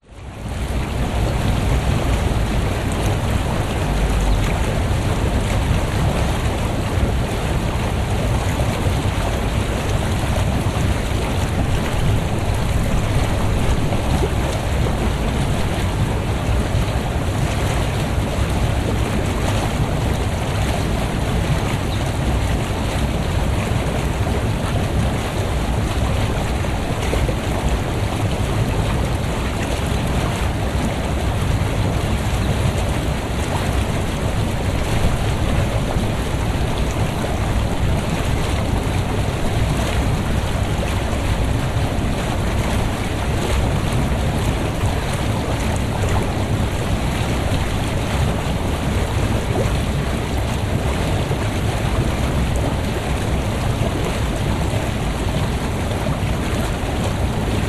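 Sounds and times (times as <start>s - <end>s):
spa bath bubbles in a public spa pool: 0.0s - 57.6s.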